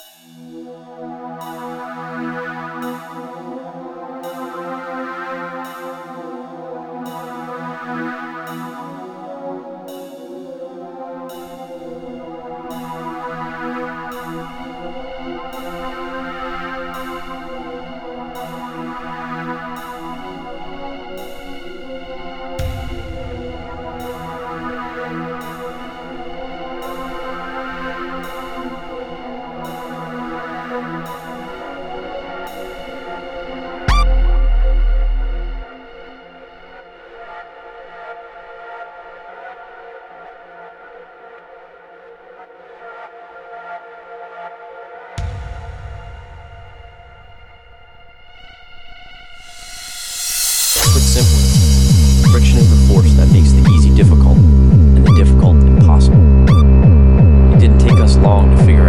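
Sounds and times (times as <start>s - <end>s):
noise: 11.7s - 36.8s, 45.2s - 58.8s
drums: 21.2s - 27.2s, 33.8s - 36.6s, 45.2s - 58.8s.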